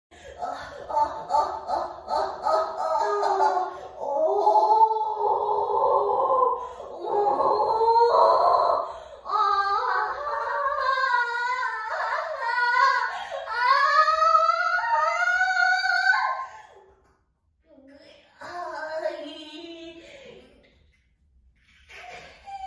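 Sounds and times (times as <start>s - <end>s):
person screaming and moaning: 0.3s - 16.8s.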